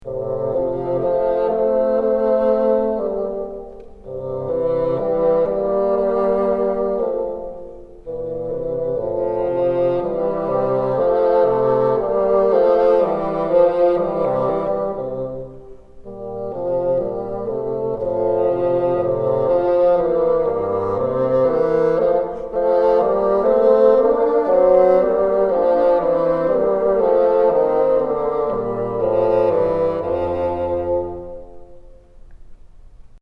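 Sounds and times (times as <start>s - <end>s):
bassoon: 0.0s - 32.3s.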